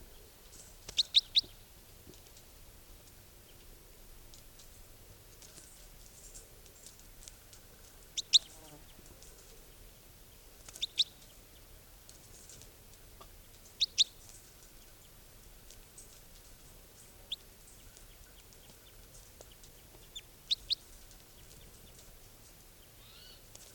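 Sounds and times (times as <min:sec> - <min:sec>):
bird calls: 0:00.2 - 0:01.6, 0:08.2 - 0:09.5, 0:10.7 - 0:11.4, 0:13.7 - 0:15.0, 0:17.0 - 0:22.0, 0:22.8 - 0:23.5.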